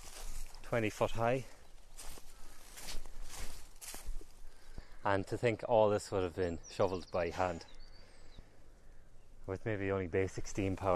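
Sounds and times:
footsteps walking along a high embankment: 0.0 - 4.9
speech: 0.7 - 1.6, 5.0 - 7.7, 9.5 - 10.9.

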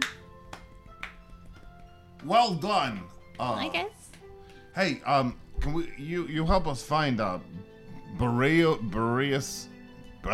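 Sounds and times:
single person clapping: 0.0 - 2.3
speech: 2.2 - 4.0, 4.8 - 10.3.

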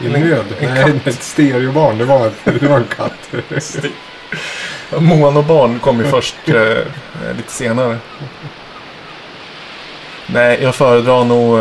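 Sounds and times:
speech: 0.0 - 8.6, 10.3 - 11.5
laughter: 0.0 - 8.8
sea waves on a beach: 0.0 - 11.5
added seagulls: 3.5 - 9.6.

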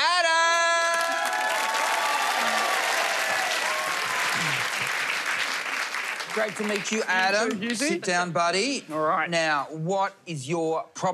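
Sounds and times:
high shouted whoop: 0.2 - 4.7
audience applauding at a live show: 0.4 - 7.9
speech: 6.4 - 11.1.

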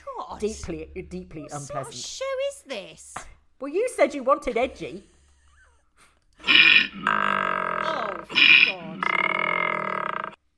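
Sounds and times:
speech: 0.4 - 5.2
loud snoring: 6.4 - 10.4.

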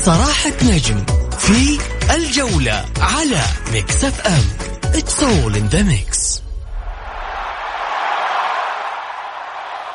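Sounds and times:
speech: 0.1 - 6.2
sports stadium crowd: 6.8 - 9.9.

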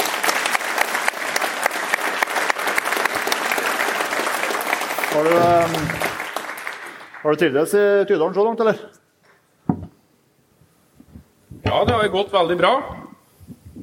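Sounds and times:
audience applause: 0.0 - 7.4
speech: 5.2 - 6.1, 7.2 - 9.0, 12.0 - 13.0.

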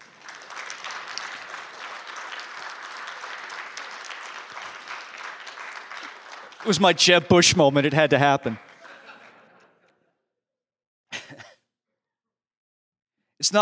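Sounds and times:
audience applause: 0.0 - 9.1
speech: 6.6 - 8.7
laughter: 8.5 - 10.2.

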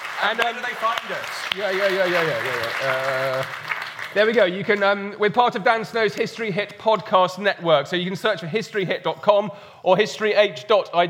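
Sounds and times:
audience round of applause: 0.0 - 4.8
speech: 0.2 - 11.0.

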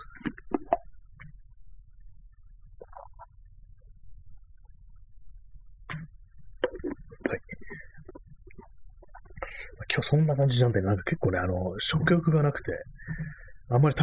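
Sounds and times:
person gulping and swallowing water: 0.0 - 1.4, 2.7 - 3.4, 5.8 - 9.8
faint low hum: 0.0 - 14.0
speech: 10.0 - 14.0.

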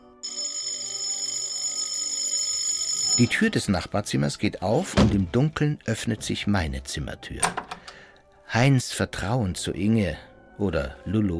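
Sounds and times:
shrill electric doorbell ringing: 0.1 - 3.6
speech: 3.2 - 7.8, 8.5 - 11.3.

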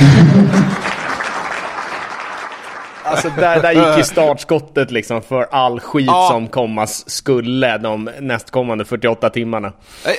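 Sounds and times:
applause: 0.4 - 3.8
laughter: 3.0 - 4.3
speech: 3.2 - 10.1.

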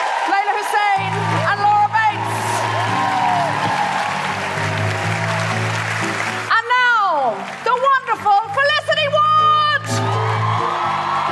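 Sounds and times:
audience applause: 0.0 - 8.6, 9.9 - 11.3.

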